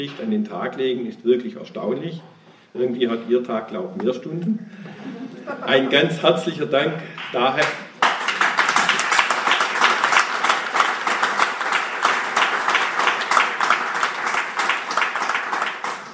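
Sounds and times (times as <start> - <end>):
speech: 0.0 - 7.8
laughter: 4.6 - 6.2
audience applause: 7.6 - 16.1.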